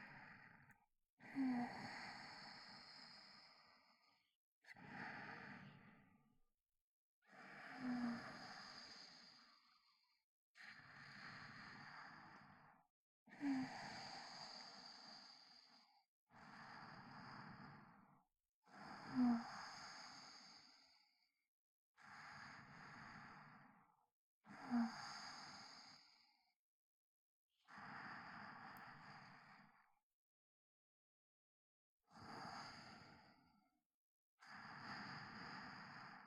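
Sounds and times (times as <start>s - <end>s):
sleep breathing recorded with binaural microphone: 0.0s - 6.1s, 7.3s - 10.0s, 10.6s - 18.0s, 18.7s - 21.2s, 22.0s - 23.8s, 24.5s - 26.4s, 27.7s - 30.0s, 32.1s - 33.5s, 34.4s - 36.2s.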